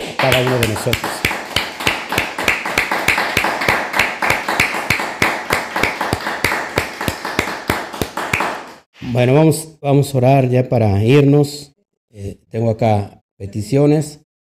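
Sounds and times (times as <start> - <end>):
audience applause: 0.0 - 8.7
speech: 0.2 - 1.2, 9.1 - 14.2.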